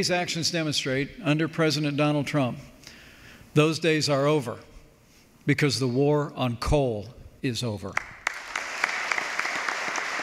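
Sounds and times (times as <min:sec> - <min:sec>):
speech: 0:00.0 - 0:02.7, 0:03.6 - 0:04.7, 0:05.4 - 0:08.2
audience applause: 0:08.2 - 0:10.2.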